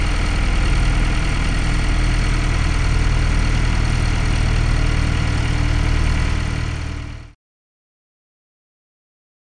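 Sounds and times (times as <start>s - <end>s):
powerboat engine starting and running: 0.0s - 7.4s.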